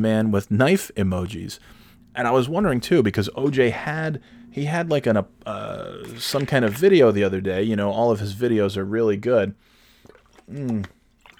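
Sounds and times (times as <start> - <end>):
speech: 0.0 - 9.7, 10.5 - 11.0
person drinking water: 5.4 - 6.9, 9.6 - 11.3.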